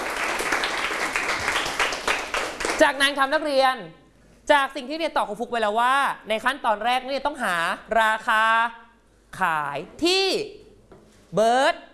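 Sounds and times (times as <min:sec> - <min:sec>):
students clapping in a classroom for a classmate: 0:00.0 - 0:02.8
speech: 0:02.8 - 0:10.6, 0:11.3 - 0:11.9.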